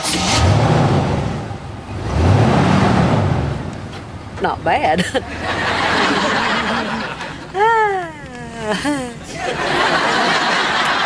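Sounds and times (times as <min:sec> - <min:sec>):
car engine revving: 0:00.0 - 0:07.5
speech: 0:04.4 - 0:05.6, 0:08.7 - 0:10.0
laughter: 0:04.9 - 0:11.0.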